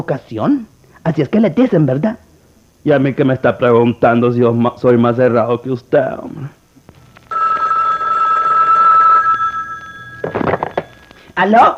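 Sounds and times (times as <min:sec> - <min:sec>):
speech: 0:00.0 - 0:02.2, 0:02.8 - 0:06.6, 0:11.4 - 0:11.7
telephone ringing: 0:06.9 - 0:11.4.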